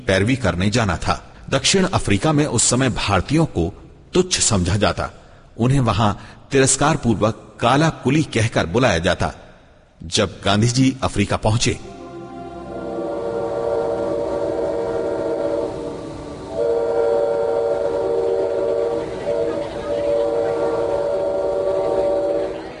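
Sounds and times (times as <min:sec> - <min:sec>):
speech: 0:00.1 - 0:09.4, 0:10.0 - 0:11.9
train whistle of a train bound for Pretoria in a radio drama: 0:12.0 - 0:22.7.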